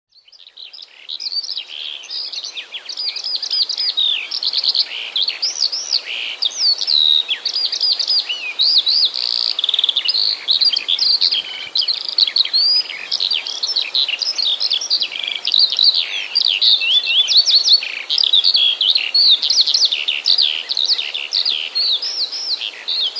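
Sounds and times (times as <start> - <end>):
Eurasian skylark singing: 0.3 - 23.1.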